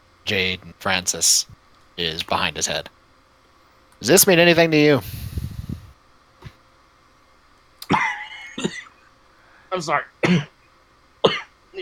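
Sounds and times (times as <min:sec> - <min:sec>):
speech: 0:00.3 - 0:03.0, 0:04.0 - 0:05.2, 0:09.7 - 0:10.5
person coughing after swallowing the wrong way: 0:07.8 - 0:09.0, 0:10.2 - 0:10.5, 0:11.2 - 0:11.8.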